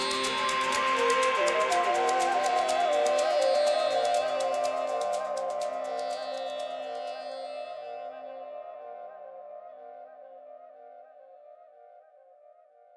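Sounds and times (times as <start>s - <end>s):
modern Indian train: 0.0s - 7.3s.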